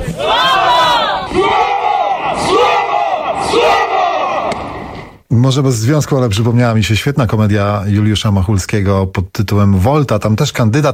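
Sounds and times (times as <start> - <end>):
clapping and shouting: 0.0 - 5.1
large crowd roaring and cheering: 0.0 - 5.2
speech: 5.3 - 10.9.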